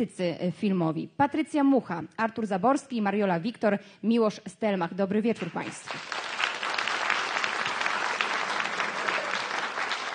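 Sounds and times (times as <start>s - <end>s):
speech: 0.0s - 6.3s
large audience applause in a hall: 5.8s - 10.1s.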